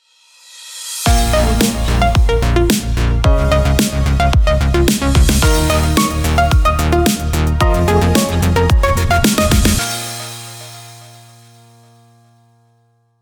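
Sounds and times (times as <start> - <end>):
breakbeat inspired logo jingle: 1.1 - 11.4.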